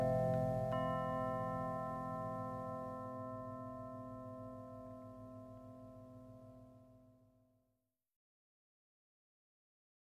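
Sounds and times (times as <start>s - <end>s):
Koshi Terra wind chime: 0.0s - 7.3s.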